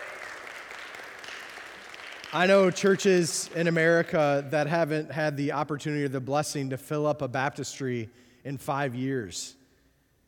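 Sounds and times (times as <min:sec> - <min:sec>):
audience clapping: 0:00.0 - 0:05.0
speech: 0:02.3 - 0:09.6.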